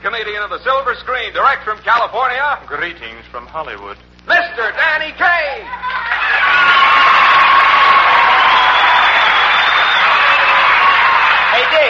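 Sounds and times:
speech: 0.2s - 7.2s
studio audience whoops and shouts: 5.6s - 11.8s
studio audience applause: 5.7s - 11.8s.

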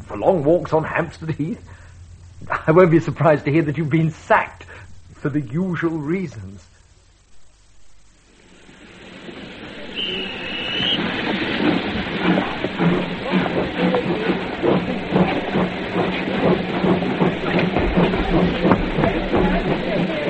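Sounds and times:
speech: 0.1s - 1.8s, 2.6s - 6.7s
train passing with wheels clattering: 9.9s - 20.2s.

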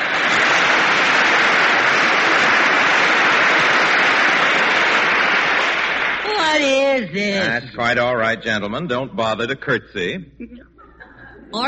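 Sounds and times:
applause: 0.0s - 6.9s
speech: 7.1s - 10.9s.

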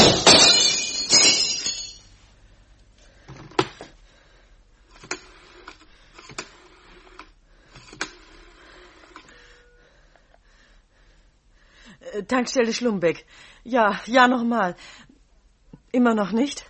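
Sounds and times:
falling glass shards clinking: 0.0s - 2.1s
window glass shattering: 0.0s - 2.1s
speech: 12.3s - 15.0s, 15.9s - 16.6s.

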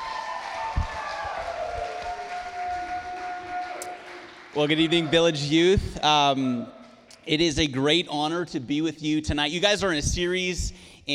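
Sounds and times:
audience applause: 0.0s - 5.4s
speech: 4.6s - 10.9s.

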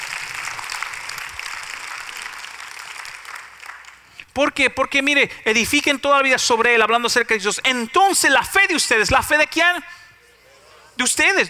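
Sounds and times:
audience applause: 0.0s - 4.3s
speech: 4.4s - 10.0s, 11.0s - 11.4s.

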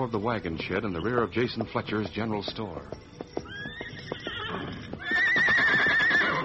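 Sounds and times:
speech: 0.0s - 3.2s
soft hoof clops and shuffling: 0.0s - 6.4s
horse whinnying: 3.4s - 6.4s.

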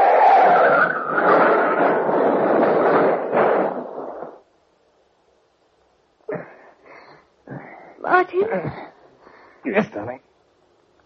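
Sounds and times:
car skidding off road: 0.0s - 3.2s
car impact thuds in ditch: 1.0s - 4.4s
speech: 9.7s - 10.2s.

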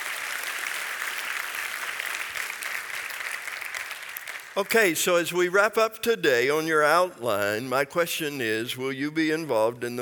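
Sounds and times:
audience applause: 0.0s - 4.9s
speech: 4.6s - 10.0s.

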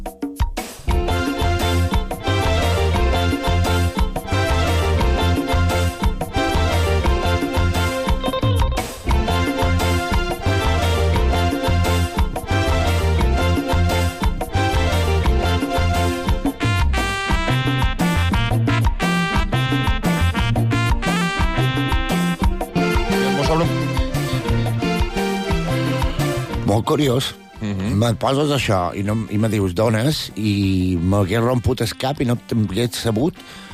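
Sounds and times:
taarab music from the Swahili coast played by a full ensemble: 0.0s - 29.7s
speech: 26.9s - 27.4s, 28.0s - 33.7s.

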